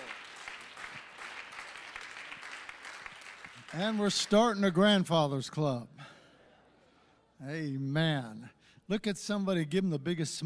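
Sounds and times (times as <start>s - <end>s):
audience applause: 0.0s - 4.4s
speech: 3.7s - 6.0s, 7.4s - 10.4s.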